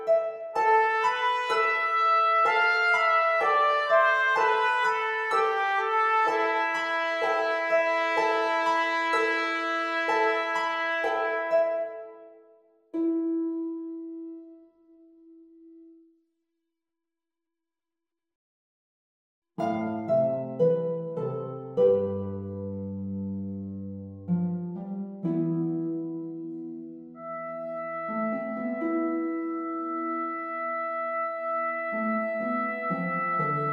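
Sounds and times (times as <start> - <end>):
trumpet: 0.0 - 12.6, 27.2 - 33.7
harp: 0.0 - 16.0, 19.6 - 33.7.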